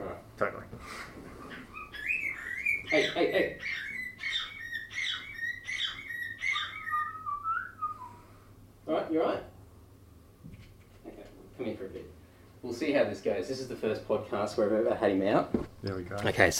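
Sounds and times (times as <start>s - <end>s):
pet bird whistling and chirping: 1.5s - 8.3s
speech: 2.9s - 3.9s, 8.9s - 9.5s, 11.6s - 16.5s.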